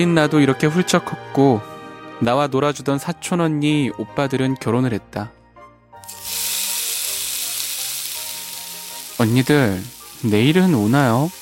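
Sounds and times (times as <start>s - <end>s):
speech: 0.0s - 5.4s, 9.2s - 11.4s
pancakes frying in a pan: 6.1s - 11.4s.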